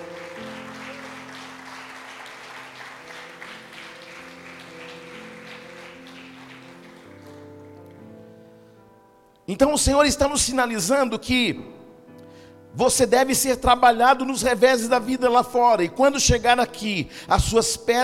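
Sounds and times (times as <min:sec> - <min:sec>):
audience applauding: 0:00.0 - 0:07.8
speech: 0:09.5 - 0:11.8, 0:12.8 - 0:18.0.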